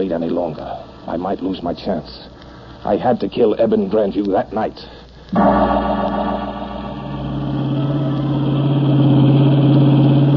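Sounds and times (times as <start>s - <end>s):
speech: 0.0s - 6.2s
blue roadster engine droning on a twisting bayou road: 5.4s - 10.3s.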